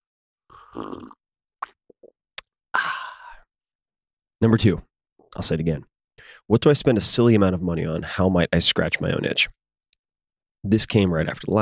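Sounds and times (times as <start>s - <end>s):
sipping coffee: 0.5s - 1.2s
speech: 0.7s - 1.2s, 4.4s - 5.9s, 6.5s - 9.6s, 10.6s - 11.6s.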